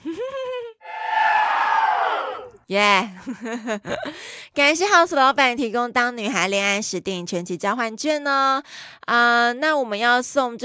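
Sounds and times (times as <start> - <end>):
crowd cheering sound effect: 0.9 - 2.6
person whooping: 0.9 - 2.6
speech: 2.7 - 10.6.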